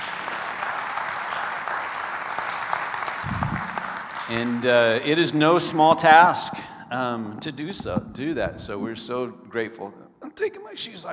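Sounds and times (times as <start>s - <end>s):
crowd applause: 0.0s - 5.8s
low thump: 3.3s - 3.8s, 7.8s - 8.8s
speech: 4.3s - 11.1s.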